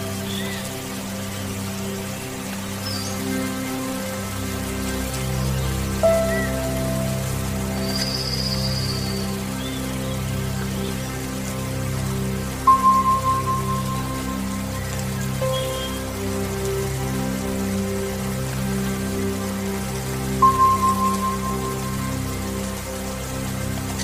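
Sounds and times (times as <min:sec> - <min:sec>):
rain patter: 0:00.0 - 0:24.0
soothing meditation music with low drone: 0:00.0 - 0:24.0.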